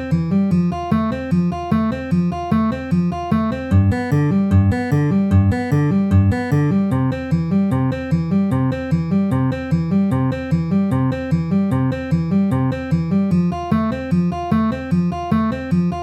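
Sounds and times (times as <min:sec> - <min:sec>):
C F G C chord progression at 150 bpm: 0:00.0 - 0:16.0.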